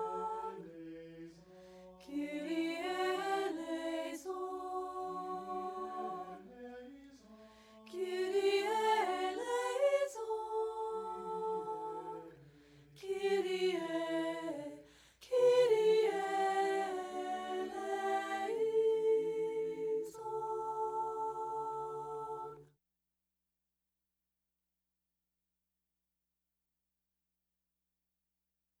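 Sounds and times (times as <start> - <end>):
antiphonal choir singing kyrie: 0.0 - 22.7.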